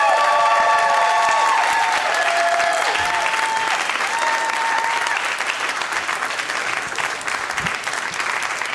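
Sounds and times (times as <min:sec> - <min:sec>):
whoops and cheers: 0:00.0 - 0:05.4
comedy show audience applause welcoming a comedian: 0:00.0 - 0:08.7.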